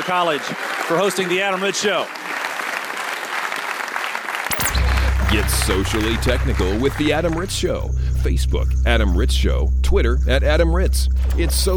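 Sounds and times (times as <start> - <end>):
speech: 0.0 - 2.4, 5.3 - 11.7
audience round of applause: 0.0 - 7.5
low hum: 4.5 - 11.7
sweeping tone: 4.5 - 11.7.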